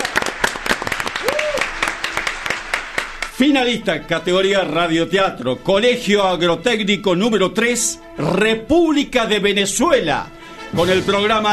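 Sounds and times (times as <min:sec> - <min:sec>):
audience applause: 0:00.0 - 0:03.4
speech: 0:03.4 - 0:11.5.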